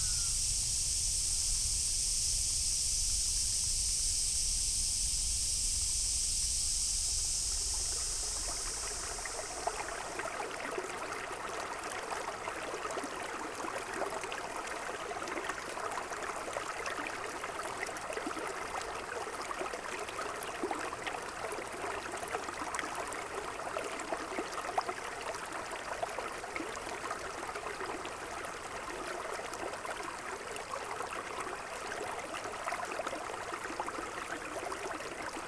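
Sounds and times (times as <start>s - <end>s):
bright steady hiss in Kyoto: 0.0s - 10.6s
trickling splashing water in Kyoto: 5.5s - 35.4s.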